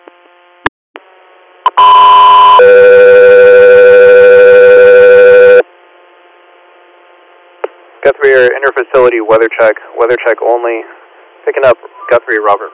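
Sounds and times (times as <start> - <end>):
radio dispatch alert tones: 1.7 - 5.6
speech: 8.3 - 12.7.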